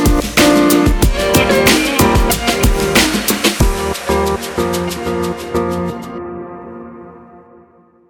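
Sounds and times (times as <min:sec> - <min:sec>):
upbeat hip hop: 0:00.0 - 0:06.1.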